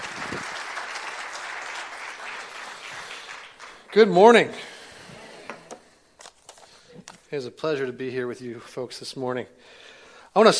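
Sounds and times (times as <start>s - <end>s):
audience applause welcoming a speaker: 0.0s - 4.3s
speech: 3.9s - 4.7s, 7.3s - 10.5s.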